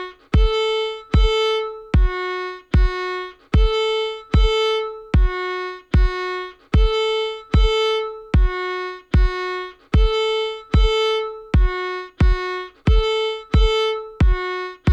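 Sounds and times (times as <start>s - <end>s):
fiddle playing intervals: 0.0s - 14.9s.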